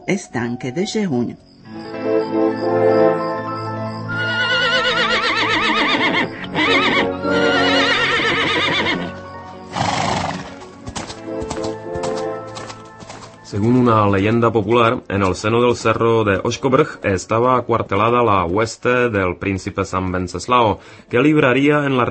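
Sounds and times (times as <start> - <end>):
speech: 0.1 - 3.4, 13.5 - 22.1
horses neighing: 4.1 - 13.4
hooves clopping: 4.2 - 22.1.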